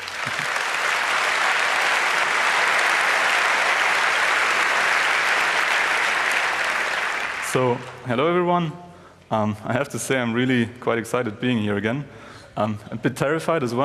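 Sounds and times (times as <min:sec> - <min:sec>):
crowd applause as a speaker is introduced for a talk: 0:00.0 - 0:08.0
speech: 0:07.6 - 0:13.8.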